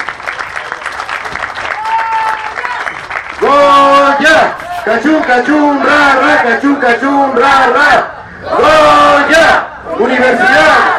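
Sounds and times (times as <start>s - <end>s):
crowd applause for students: 0.0s - 4.8s
speech: 4.8s - 10.9s.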